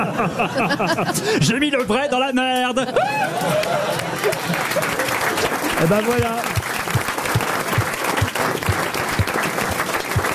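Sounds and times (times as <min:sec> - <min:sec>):
laughter: 0:00.0 - 0:01.6, 0:02.5 - 0:06.3
speech: 0:00.0 - 0:06.7
audience applause: 0:03.0 - 0:10.3.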